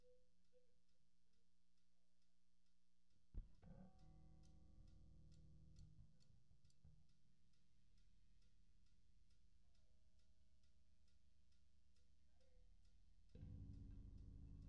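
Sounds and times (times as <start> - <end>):
bass: 3.4 - 14.6.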